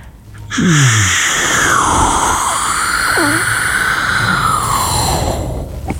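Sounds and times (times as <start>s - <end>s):
voice imitating an aeroplane: 0.5s - 4.8s.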